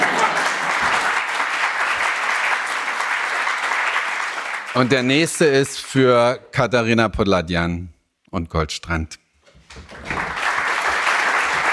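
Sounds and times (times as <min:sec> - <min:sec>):
audience applause: 0:00.0 - 0:05.5, 0:09.7 - 0:11.7
speech: 0:04.8 - 0:09.2.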